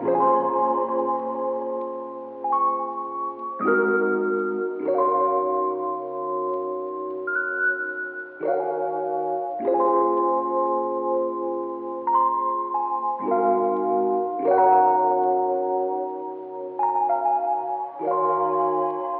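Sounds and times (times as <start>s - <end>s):
sad keyboard loop: 0.0s - 19.1s.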